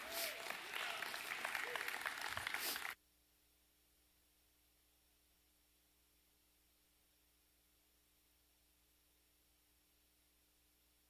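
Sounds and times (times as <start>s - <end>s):
audience applause: 0.0s - 3.0s.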